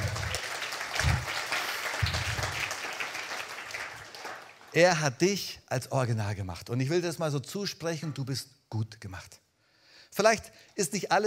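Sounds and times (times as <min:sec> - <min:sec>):
audience applause: 0:00.0 - 0:04.8
speech: 0:04.7 - 0:09.4, 0:10.1 - 0:11.2.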